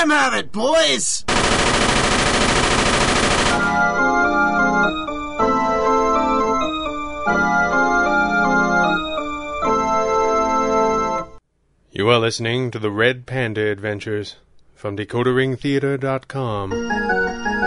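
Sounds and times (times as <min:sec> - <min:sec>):
speech: 0:00.0 - 0:01.8, 0:12.0 - 0:17.2
Tommy gun machine-gun fire, radio drama sound effect: 0:01.3 - 0:04.1
loud dramatic music: 0:03.5 - 0:11.4.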